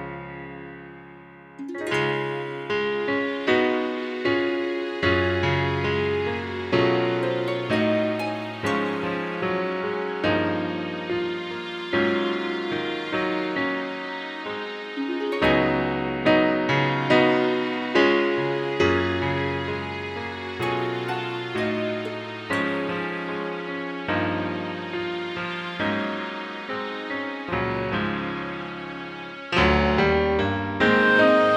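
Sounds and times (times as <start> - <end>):
orchestral accompaniment track: 1.6 - 30.1, 30.8 - 31.5.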